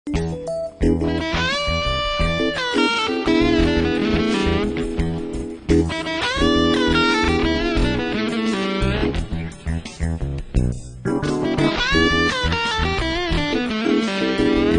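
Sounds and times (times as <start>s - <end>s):
blues music: 0.1s - 14.7s.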